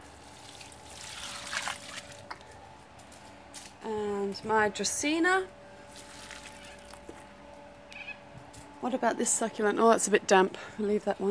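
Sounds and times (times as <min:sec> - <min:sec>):
water trickling while watering houseplants: 0:00.0 - 0:02.4, 0:05.9 - 0:07.1
speech: 0:03.8 - 0:05.6, 0:08.8 - 0:11.2.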